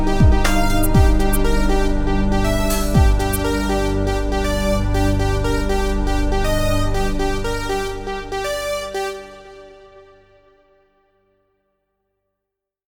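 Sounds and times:
electronic EDM music: 0.0 - 10.0.

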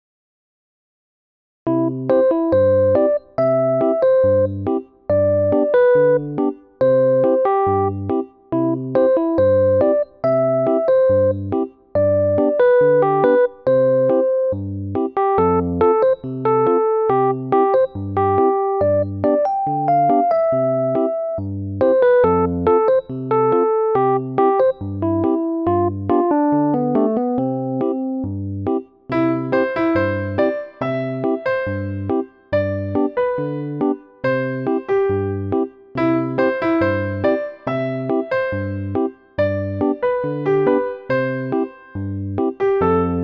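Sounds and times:
new age music: 1.7 - 43.2.

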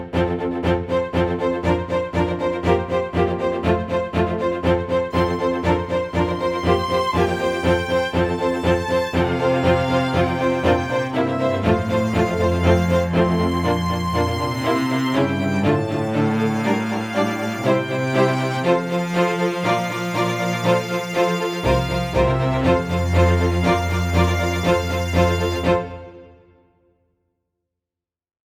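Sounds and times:
chamber music: 0.1 - 26.4.

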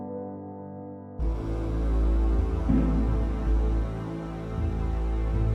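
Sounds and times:
low tense slow drone: 1.2 - 5.5.

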